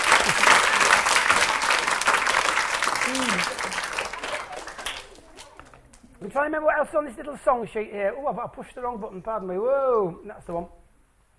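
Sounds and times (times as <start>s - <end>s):
audience round of applause: 0.0s - 6.0s
speech: 6.3s - 10.8s.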